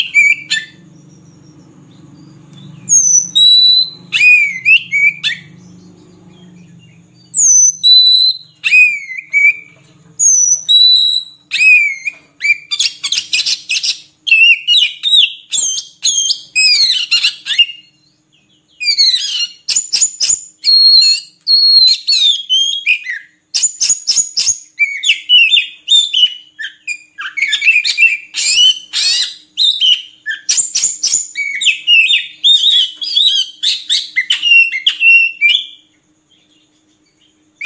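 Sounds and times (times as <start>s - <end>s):
low hum: 0.0s - 10.7s
Oriental magpie-robin whistling: 0.0s - 35.8s.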